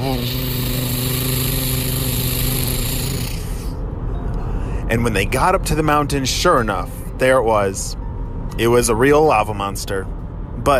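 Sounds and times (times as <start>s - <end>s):
monster truck engines driving uphill: 0.0s - 3.8s
speech: 0.1s - 0.7s, 4.9s - 8.0s, 8.6s - 10.7s.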